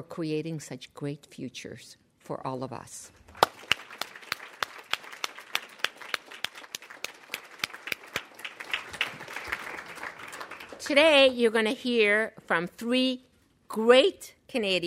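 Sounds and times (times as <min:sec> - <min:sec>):
speech: 0:00.0 - 0:03.2, 0:10.9 - 0:14.8
sharp individual claps: 0:03.3 - 0:10.9
audience applause: 0:03.4 - 0:10.9.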